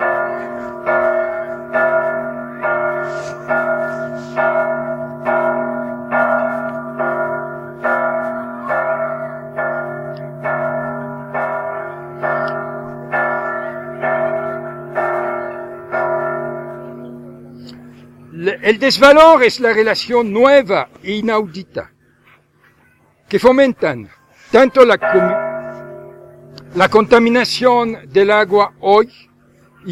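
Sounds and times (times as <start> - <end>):
church bell tolling: 0.0 - 20.8, 24.6 - 29.9
speech: 18.7 - 21.9, 23.3 - 25.4, 26.8 - 29.9.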